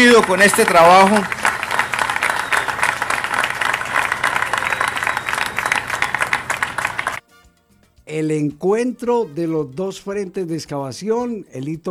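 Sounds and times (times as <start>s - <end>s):
speech: 0.0s - 1.4s, 8.1s - 11.8s
audience applause: 0.0s - 7.2s.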